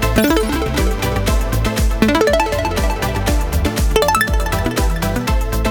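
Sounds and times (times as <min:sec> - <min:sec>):
mega win jingle: 0:00.2 - 0:05.6.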